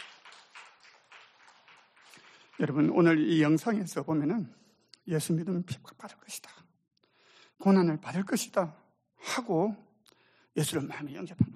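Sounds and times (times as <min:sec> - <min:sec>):
audience applause: 0:00.0 - 0:03.2
speech: 0:02.6 - 0:06.5, 0:07.6 - 0:09.9, 0:10.6 - 0:11.5.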